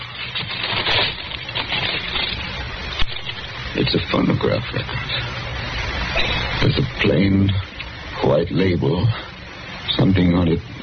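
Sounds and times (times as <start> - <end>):
brown paper crackling and tearing as a wax-sealed parcel is opened: 0.0 - 5.1
speech: 3.8 - 5.4, 6.2 - 9.3, 9.9 - 10.7.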